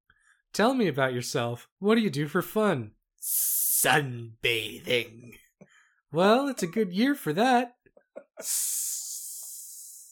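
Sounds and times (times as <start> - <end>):
speech: 0.5 - 5.4, 6.1 - 9.0
person hissing quietly: 8.4 - 10.1.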